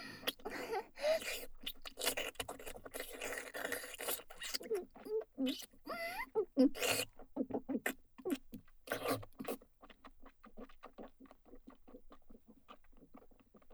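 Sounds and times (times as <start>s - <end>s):
wet sucking sounds for ASMR: 0.0s - 9.6s.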